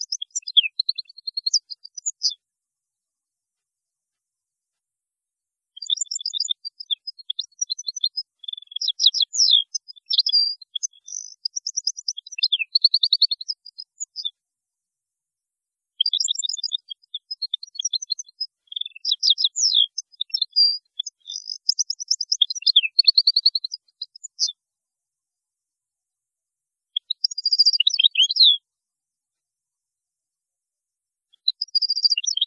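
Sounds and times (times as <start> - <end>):
European goldfinch twittering song: 0.0 - 2.4, 5.8 - 14.3, 16.0 - 24.6, 27.0 - 28.6, 31.4 - 32.4.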